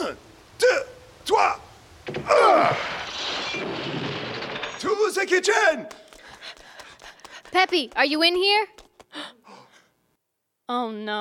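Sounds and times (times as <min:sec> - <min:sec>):
door smashing open: 0:02.0 - 0:05.1
debris rattling and scattering: 0:02.1 - 0:05.2
speech: 0:05.3 - 0:06.0, 0:07.5 - 0:09.4, 0:10.7 - 0:11.1.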